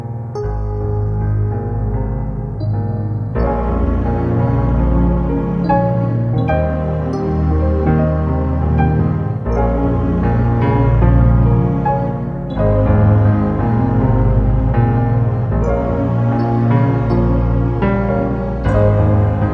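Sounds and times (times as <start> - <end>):
musical accompaniment in A flat: 0.4 - 19.5.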